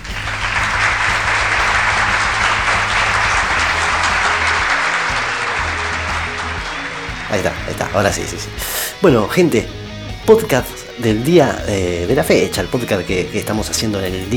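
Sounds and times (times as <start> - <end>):
applause: 0.0 - 8.3
speech: 7.3 - 14.3.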